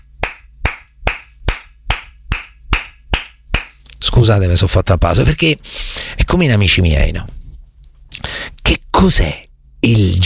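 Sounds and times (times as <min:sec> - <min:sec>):
one person clapping for himself: 0:00.2 - 0:04.0
speech: 0:04.2 - 0:07.4, 0:09.0 - 0:10.2.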